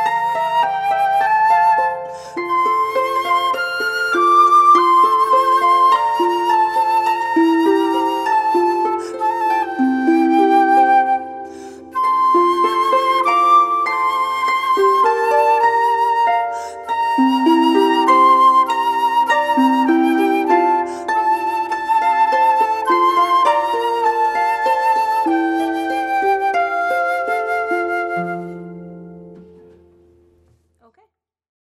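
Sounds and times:
flute: 0.0s - 29.9s
harp: 0.0s - 30.4s.

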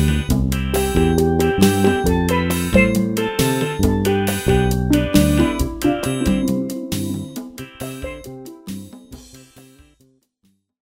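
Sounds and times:
steel drum: 1.1s - 8.8s.

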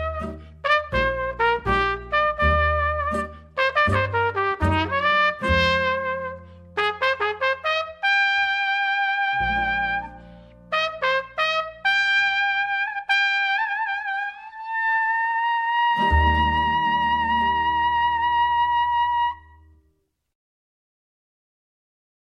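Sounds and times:
upright bass: 0.0s - 6.7s, 16.0s - 18.4s
trumpet: 0.0s - 19.7s.

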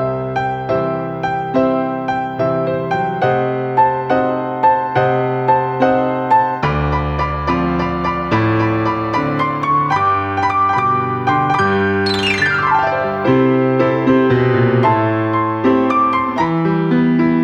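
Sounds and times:
solo jazz piano: 0.0s - 17.4s.

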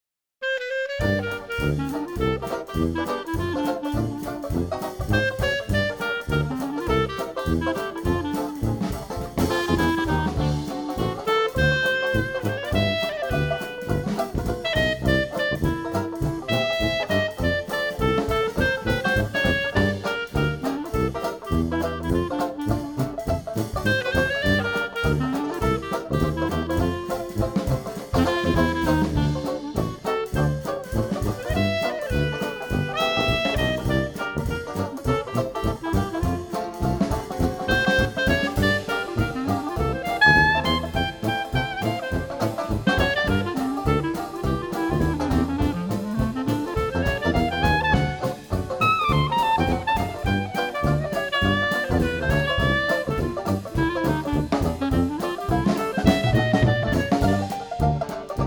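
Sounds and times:
dixieland jazz quartet playing: 0.4s - 58.4s.

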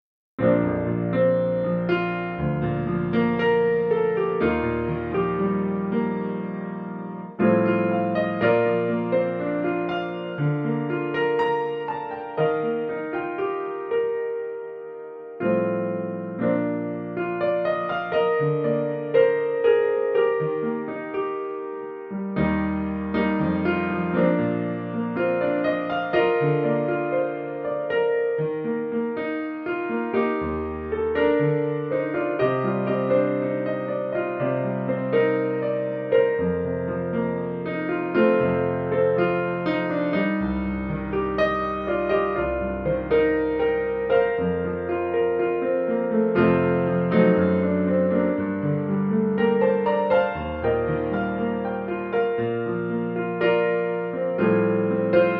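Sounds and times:
solo piano: 0.4s - 55.3s.

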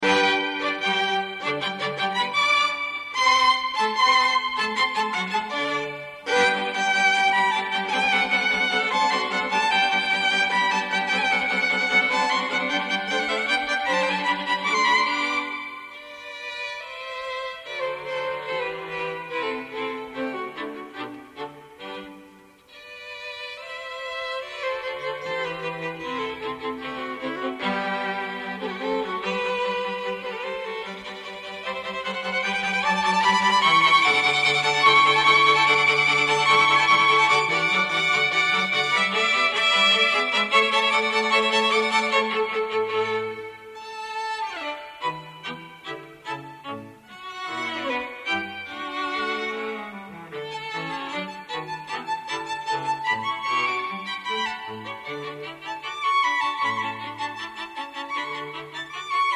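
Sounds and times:
string quartet: 0.0s - 59.3s.

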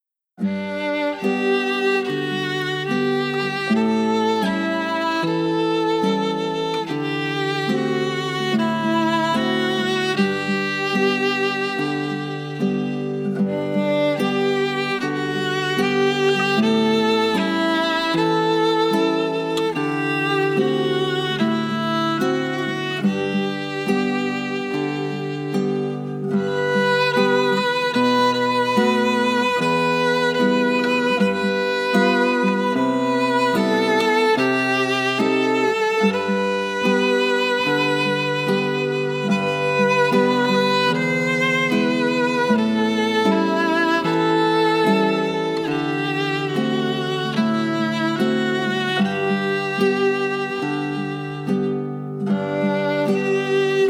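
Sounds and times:
classical guitar: 0.4s - 53.8s.

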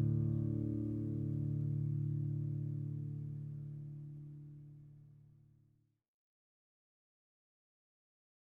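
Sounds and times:
solo flamenco guitar: 0.0s - 4.7s.

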